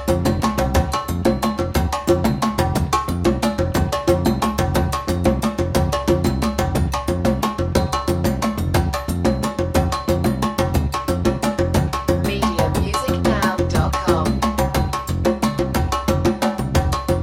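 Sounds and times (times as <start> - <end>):
bass: 0.0 - 17.2
drums: 0.0 - 17.2.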